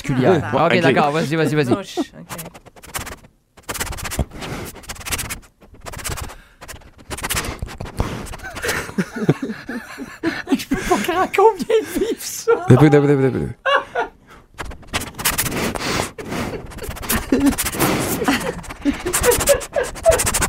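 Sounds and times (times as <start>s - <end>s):
people laughing: 0.0s - 2.4s, 8.4s - 14.2s, 16.2s - 20.4s
speech: 0.0s - 2.6s, 12.6s - 13.6s
person imitating dog sniffing under a door: 2.3s - 8.7s, 14.6s - 20.4s.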